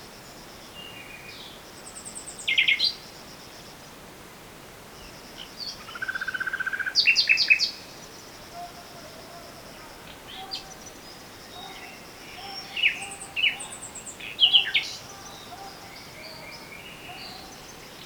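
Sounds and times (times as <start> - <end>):
nightingale singing: 5.0 - 18.0.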